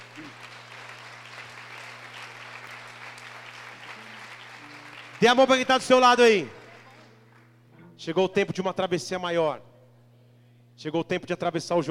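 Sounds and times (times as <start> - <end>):
applause: 0.0 - 7.5
speech: 5.2 - 6.6, 8.0 - 9.7, 10.8 - 11.8.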